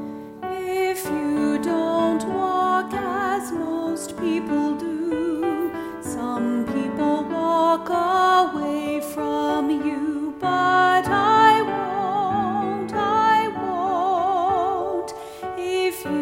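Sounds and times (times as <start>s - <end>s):
person singing: 0.5s - 16.1s.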